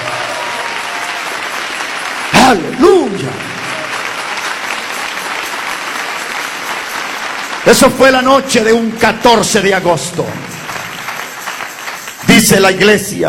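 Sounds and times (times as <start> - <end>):
audience applause: 0.0 - 12.8
speech: 2.5 - 3.5, 7.7 - 10.6, 12.4 - 13.2.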